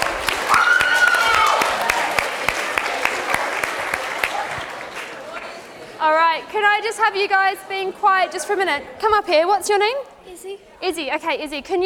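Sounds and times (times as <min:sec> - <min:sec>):
audience round of applause: 0:00.0 - 0:05.8
speech: 0:06.7 - 0:11.8.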